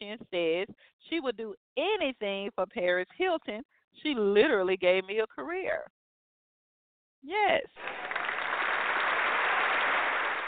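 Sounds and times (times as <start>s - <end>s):
speech: 0.2s - 6.0s, 7.2s - 8.5s
hand clapping from many people: 7.7s - 10.4s.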